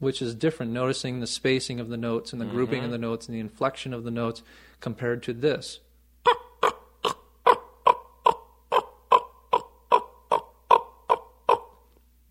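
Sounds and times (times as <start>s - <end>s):
speech: 0.0s - 6.8s
raven calls chasing an eagle from territory: 6.2s - 11.8s.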